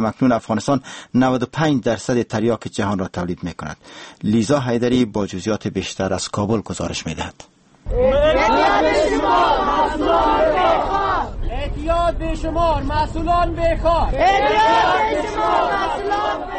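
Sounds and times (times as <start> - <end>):
speech: 0.0 - 10.9, 12.1 - 16.5
drug addicts and civil society activists chanting in Kabul's Pul-e Artal area: 7.9 - 11.5, 14.1 - 16.5.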